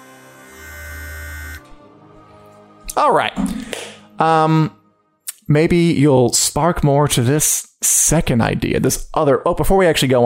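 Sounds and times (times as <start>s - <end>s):
buzzer sound effect: 0.0s - 1.6s
speech: 3.0s - 4.8s, 5.5s - 10.2s.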